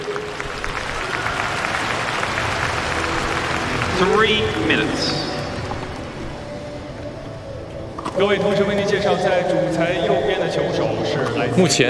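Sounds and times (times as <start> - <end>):
audience applause: 0.0 - 6.5
speech: 4.0 - 5.3, 8.2 - 11.8.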